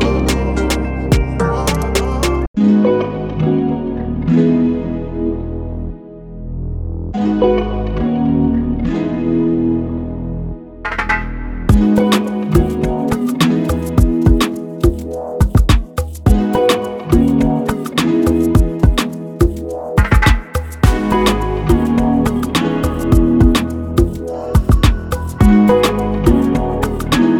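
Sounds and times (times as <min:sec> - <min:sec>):
Afrobeats guitars: 0:00.0 - 0:06.0, 0:07.2 - 0:10.0, 0:11.3 - 0:27.3.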